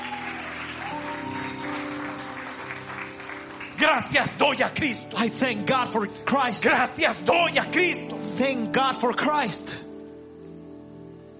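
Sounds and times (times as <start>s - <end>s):
audience applause: 0.0s - 4.8s
speech: 3.8s - 9.8s.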